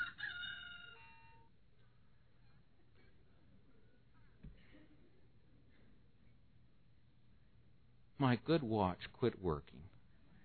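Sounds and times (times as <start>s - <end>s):
electronic rooster timer crowing: 0.0s - 1.5s
speech: 8.2s - 10.0s.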